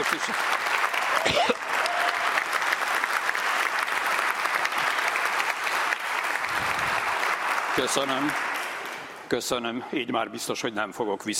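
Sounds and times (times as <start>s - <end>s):
large group applauding in parliament chamber: 0.0s - 9.2s
speech: 0.1s - 0.6s, 1.2s - 1.6s, 7.8s - 8.5s, 9.3s - 11.3s.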